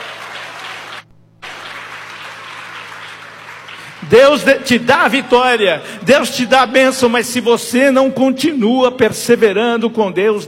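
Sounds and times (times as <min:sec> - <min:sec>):
audience clapping hands: 0:00.0 - 0:05.7
speech: 0:04.0 - 0:10.4.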